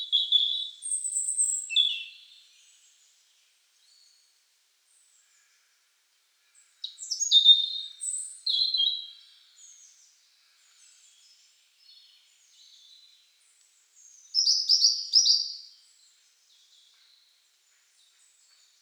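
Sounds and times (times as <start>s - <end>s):
European robin Erithacus rubecula singing: 0.0s - 2.4s, 6.8s - 9.3s, 14.1s - 15.7s.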